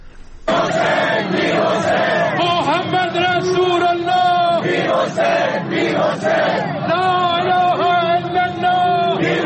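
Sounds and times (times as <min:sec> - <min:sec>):
funeral crowd chanting slogans in response: 0:00.4 - 0:09.4.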